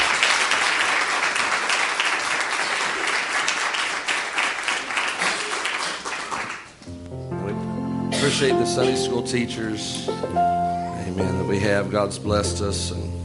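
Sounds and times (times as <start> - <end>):
room full of people clapping: 0.0 - 6.9
speech: 8.3 - 13.1.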